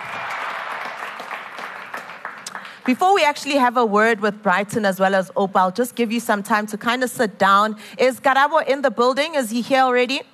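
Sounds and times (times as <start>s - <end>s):
audience clapping hands: 0.0s - 3.2s
speech: 2.8s - 10.3s.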